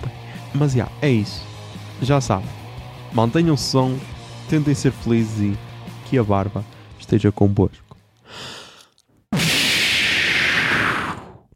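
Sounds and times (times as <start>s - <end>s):
speech: 0.5s - 8.5s
smoke bomb: 9.3s - 11.5s.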